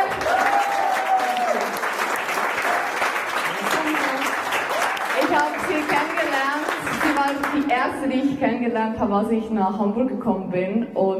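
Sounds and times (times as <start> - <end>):
audience applause: 0.0 - 7.8
speech: 7.8 - 11.1.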